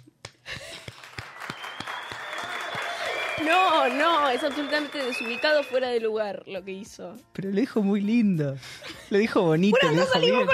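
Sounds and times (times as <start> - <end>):
group applause: 0.5 - 6.1
speech: 3.4 - 10.5.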